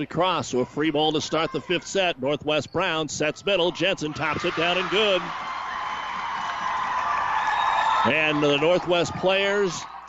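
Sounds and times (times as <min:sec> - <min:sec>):
speech: 0:00.0 - 0:05.5, 0:08.0 - 0:09.9
crowd cheering at volleyball match: 0:03.6 - 0:10.0.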